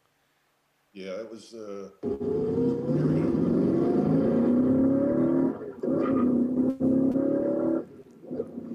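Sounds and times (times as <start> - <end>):
speech: 1.0 - 3.9
Shelby Mustang engine of the inboard-headlight generation revving and accelerating hard: 2.0 - 8.7.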